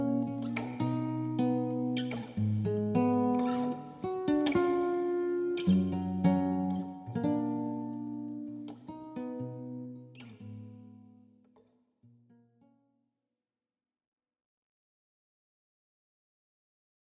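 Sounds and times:
guitar: 0.0 - 12.9.

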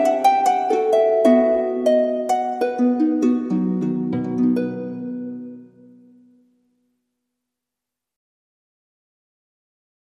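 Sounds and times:
harp playing a gigue: 0.0 - 6.1.

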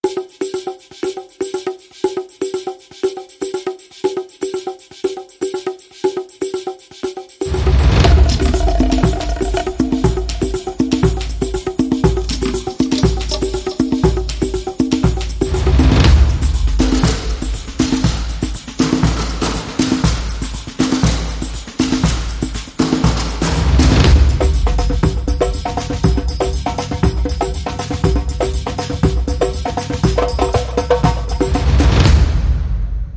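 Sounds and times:
short festive percussion rhythm: 0.0 - 33.1.

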